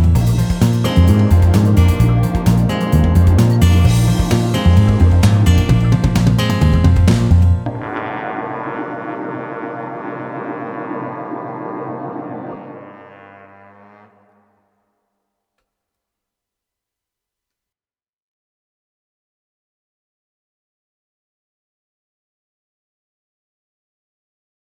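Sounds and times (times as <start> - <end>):
instrument playing speed slurs in Bb: 0.2 - 14.6.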